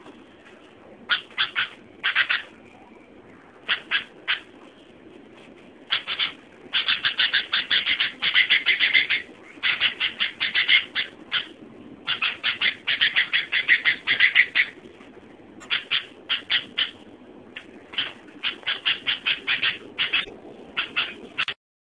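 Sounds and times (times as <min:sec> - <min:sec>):
kutilang bird calling: 0:01.1 - 0:02.7, 0:03.6 - 0:04.6, 0:05.9 - 0:14.8, 0:15.6 - 0:17.0, 0:17.6 - 0:21.6.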